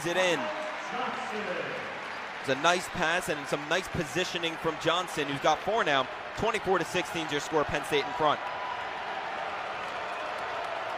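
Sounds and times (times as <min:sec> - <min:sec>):
speech: 0:00.0 - 0:08.5
basketball arena crowd applauding: 0:00.0 - 0:10.9.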